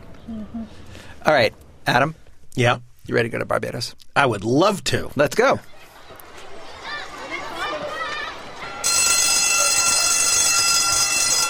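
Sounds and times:
speech: 0.3s - 5.7s
primary school bell ringing: 8.6s - 11.4s.

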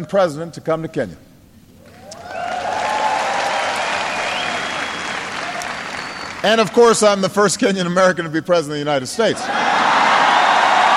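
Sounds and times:
speech: 0.0s - 1.3s, 6.4s - 9.8s
crowd cheering and applauding: 1.9s - 6.9s, 9.4s - 10.9s.

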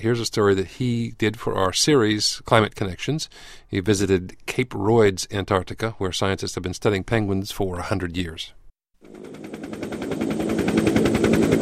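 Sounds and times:
speech: 0.0s - 9.5s
helicopter flying: 9.0s - 11.5s.

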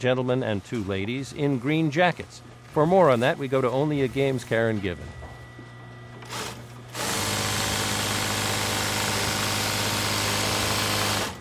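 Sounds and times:
speech: 0.0s - 5.2s
sewing machines humming in the New England Flag and Banner sewing room: 6.2s - 11.4s.

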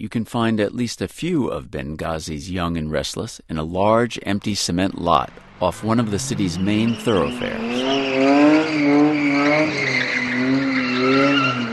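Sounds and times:
speech: 0.0s - 10.6s
Toyota car engines droning: 5.0s - 11.7s
Toyota cars fishtailing and skidding on a cement lot in Benghazi: 5.2s - 11.7s.

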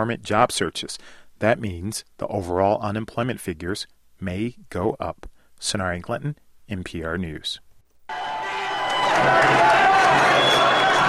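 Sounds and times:
speech: 0.0s - 8.2s, 9.2s - 10.7s
protesters cheering and shouting marching out of Wisconsin's state capitol building: 8.1s - 11.0s.

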